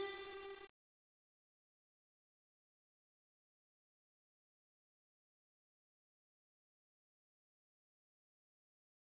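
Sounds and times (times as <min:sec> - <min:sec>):
karaoke backing music: 0:00.0 - 0:00.6.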